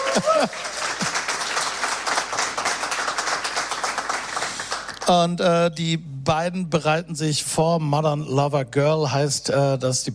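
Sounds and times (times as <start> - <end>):
audience applause: 0.0 - 5.1
speech: 0.2 - 1.2, 5.1 - 10.1.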